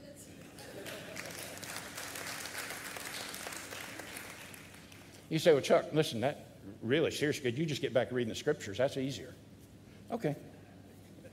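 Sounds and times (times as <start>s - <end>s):
audience clapping: 0.4s - 5.2s
speech: 5.3s - 9.4s, 10.1s - 10.5s.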